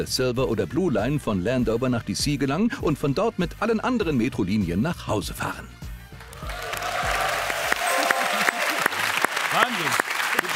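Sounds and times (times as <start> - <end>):
speech: 0.0 - 5.8
applause: 6.2 - 10.5.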